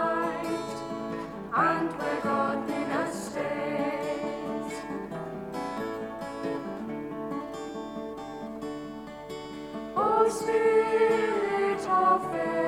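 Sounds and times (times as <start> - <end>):
unison voices singing a short verse anthem: 0.0 - 5.2, 10.0 - 12.6
guitar: 0.0 - 12.6.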